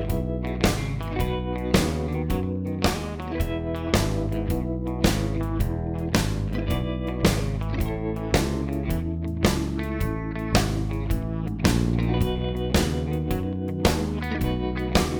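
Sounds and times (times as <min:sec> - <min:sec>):
honky tonk shuffle backing track in E: 0:00.0 - 0:15.1.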